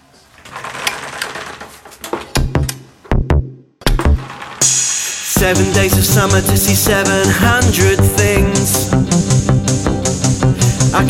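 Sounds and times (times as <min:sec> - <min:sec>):
instrumental song intro: 0:02.4 - 0:11.0
speech: 0:05.4 - 0:09.4.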